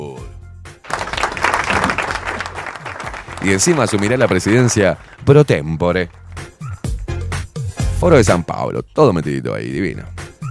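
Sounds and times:
applause: 0.8 - 6.6
speech: 3.4 - 6.2, 8.0 - 10.2.

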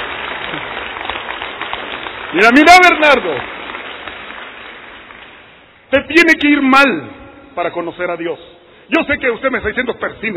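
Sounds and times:
audience applause: 0.0 - 5.6
speech: 2.3 - 3.5, 5.9 - 10.3.

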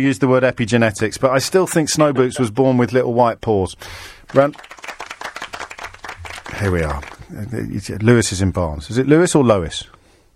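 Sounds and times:
speech: 0.0 - 4.8, 6.6 - 10.0
round of applause: 4.2 - 7.5.

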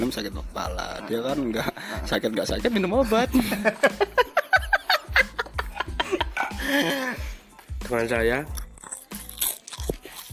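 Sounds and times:
speech: 0.0 - 4.2, 7.9 - 8.6
laughter: 1.1 - 7.4
crunching on crispy crackers: 8.5 - 10.3.

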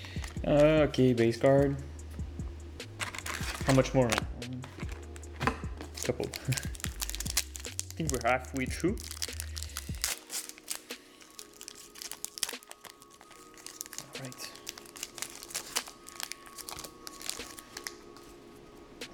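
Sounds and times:
plastic wrapping from trading card packs crinkling: 0.0 - 0.8, 2.9 - 18.6
speech: 0.4 - 1.9, 3.7 - 4.8, 6.1 - 6.8, 8.0 - 9.1.

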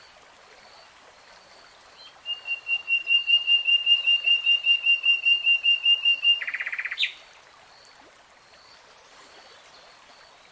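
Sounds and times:
nightingale whistling: 2.3 - 7.0.

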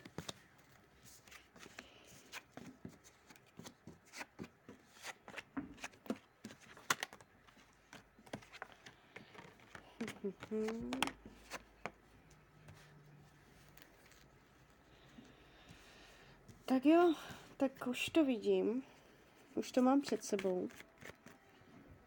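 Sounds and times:
tarot cards being turned over: 0.0 - 12.0, 20.0 - 21.4
speech: 10.3 - 11.2, 16.8 - 19.0, 19.6 - 20.9.

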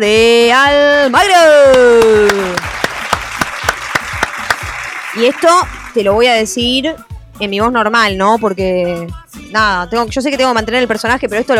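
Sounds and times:
speech: 0.0 - 2.6, 5.2 - 11.5
studio audience applause: 1.7 - 6.0.

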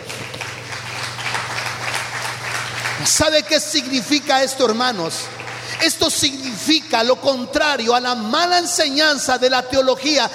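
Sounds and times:
audience applause: 0.0 - 6.2
speech: 3.0 - 10.3.

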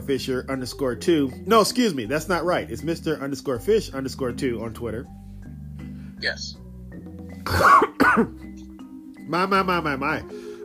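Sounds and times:
speech: 0.1 - 5.2, 6.2 - 6.6, 7.5 - 8.5, 9.3 - 10.5
choking cough: 7.4 - 8.5.

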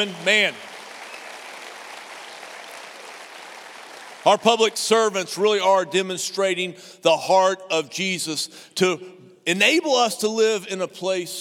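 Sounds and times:
speech: 0.0 - 0.7, 4.2 - 11.3
audience applause: 0.0 - 4.4.

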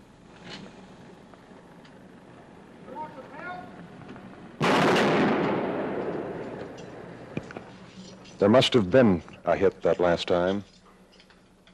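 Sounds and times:
gunshots from a sniper in a tower: 4.6 - 6.6
speech: 8.4 - 10.7.

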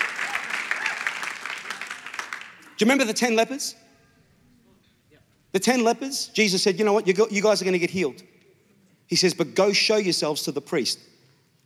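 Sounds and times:
church congregation applauding: 0.0 - 3.0
speech: 2.8 - 3.8, 5.5 - 8.3, 9.1 - 11.1.

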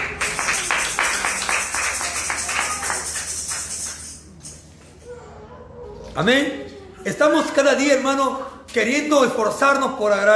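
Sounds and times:
audience clapping rhythmically: 0.0 - 4.0
speech: 6.2 - 10.3.

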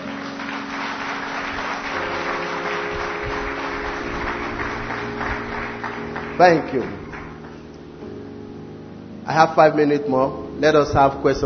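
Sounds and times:
crowd applause: 0.0 - 7.7
speech: 6.4 - 7.0, 9.3 - 11.4.

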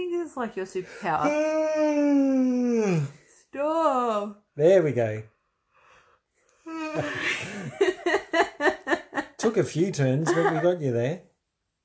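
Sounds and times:
speech: 0.0 - 5.3, 7.0 - 8.7, 9.4 - 11.3
person fake yawning: 1.2 - 3.2, 6.7 - 7.4
laughter: 6.8 - 10.8.

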